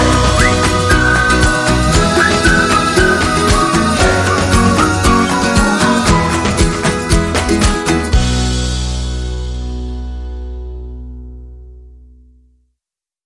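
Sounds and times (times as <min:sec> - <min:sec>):
ukulele: 0:00.0 - 0:10.4.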